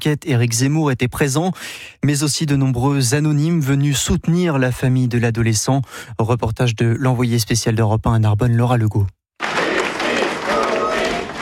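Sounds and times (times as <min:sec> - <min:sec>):
speech: 0:00.0 - 0:09.2
crowd applauding a family leading a procession: 0:09.4 - 0:11.4.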